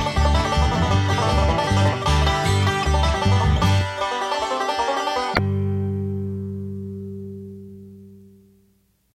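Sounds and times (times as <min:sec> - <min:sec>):
fast Dixie banjo breakdown: 0:00.0 - 0:06.1.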